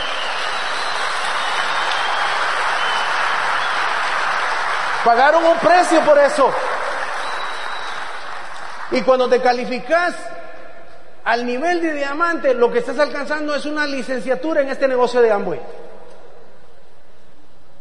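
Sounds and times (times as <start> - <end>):
audience applause: 0.0 - 9.1
speech: 5.0 - 6.6, 8.9 - 10.3, 11.2 - 15.8.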